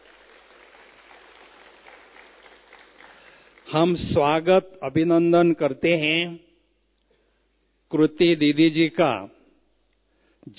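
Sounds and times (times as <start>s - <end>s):
audience applause: 0.0s - 3.7s
speech: 3.7s - 6.5s, 7.9s - 9.4s.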